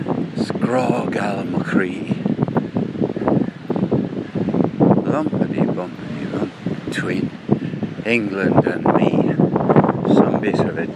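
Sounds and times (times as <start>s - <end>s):
Atlantic Ocean: 0.0s - 10.9s
speech: 0.7s - 2.2s, 7.0s - 7.3s, 8.0s - 9.2s, 10.1s - 10.9s.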